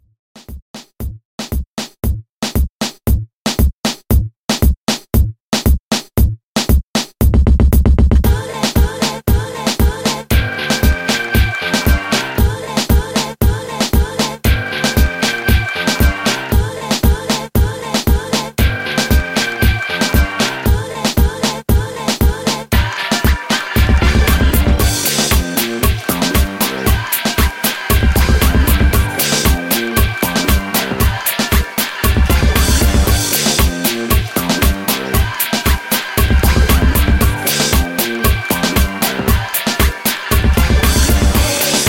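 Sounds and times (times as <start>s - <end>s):
90s extended dance mix at 116 BPM: 0.4s - 41.8s.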